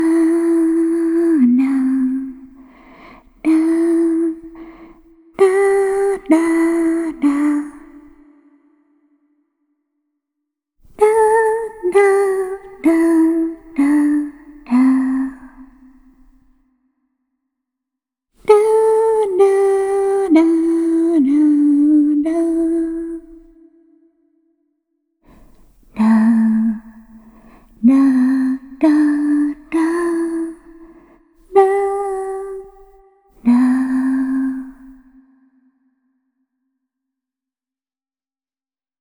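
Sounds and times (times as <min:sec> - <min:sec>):
lullaby with reverb: 0:00.0 - 0:08.7, 0:11.0 - 0:16.4, 0:18.4 - 0:24.3, 0:25.3 - 0:35.4.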